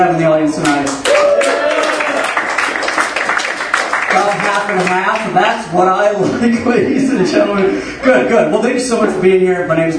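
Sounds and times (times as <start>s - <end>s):
speech: 0.0s - 1.5s, 4.2s - 9.9s
audience applause: 1.0s - 5.2s
laughter: 6.2s - 8.5s.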